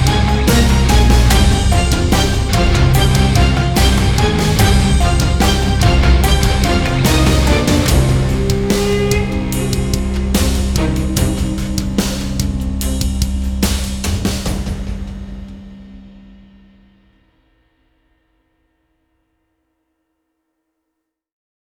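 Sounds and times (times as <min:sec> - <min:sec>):
hybrid ethnic orchestral music: 0:00.0 - 0:16.8.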